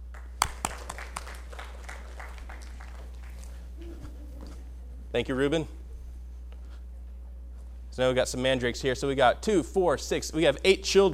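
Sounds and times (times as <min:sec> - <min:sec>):
low constant hum: 0:00.0 - 0:11.1
audience round of applause: 0:00.1 - 0:03.7
speech: 0:05.2 - 0:05.8, 0:08.0 - 0:11.1.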